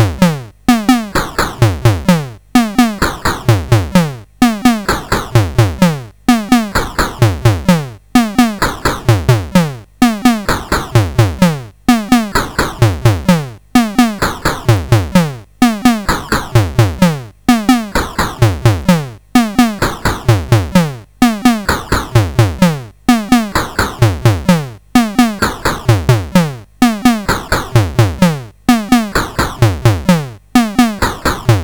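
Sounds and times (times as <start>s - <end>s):
drum demo: 0.0s - 31.6s.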